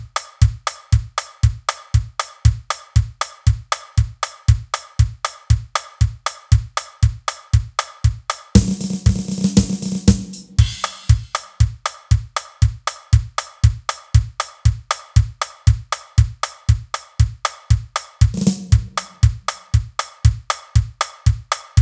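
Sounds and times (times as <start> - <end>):
norteño drum kit: 0.0 - 21.8.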